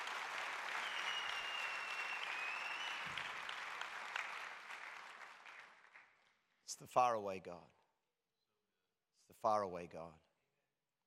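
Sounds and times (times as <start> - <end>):
audience applause: 0.0 - 6.2
speech: 6.7 - 7.8, 9.4 - 10.3.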